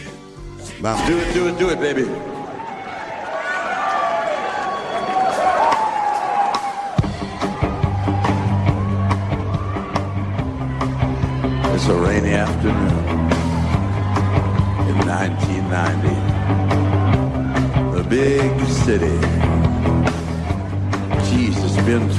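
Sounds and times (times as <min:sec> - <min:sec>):
rock song playing: 0:00.0 - 0:03.9, 0:04.7 - 0:22.1
speech: 0:00.8 - 0:02.4, 0:11.9 - 0:13.3, 0:15.2 - 0:17.0, 0:18.1 - 0:19.5, 0:21.3 - 0:22.1.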